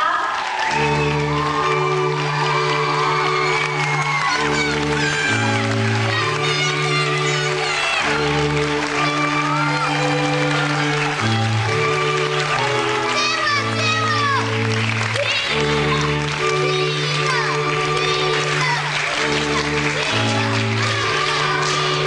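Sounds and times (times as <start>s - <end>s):
applause for bride and groom: 0.0s - 22.0s.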